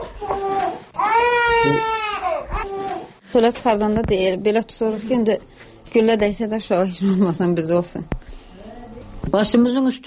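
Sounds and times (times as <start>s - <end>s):
two-month-old baby crying at home: 0.0s - 3.2s
speech: 3.3s - 8.2s, 9.2s - 10.0s.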